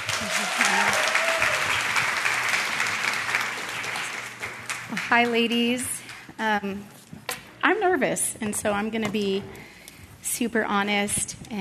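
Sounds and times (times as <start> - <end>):
audience applause welcoming a speaker: 0.0 - 5.8
speech: 5.1 - 7.0, 7.7 - 9.6, 10.4 - 11.6.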